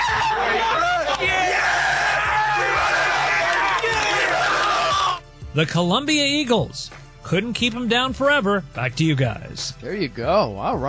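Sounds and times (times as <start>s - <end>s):
crowd celebrating a football team's first win since 2015: 0.0s - 5.2s
speech: 5.6s - 10.8s.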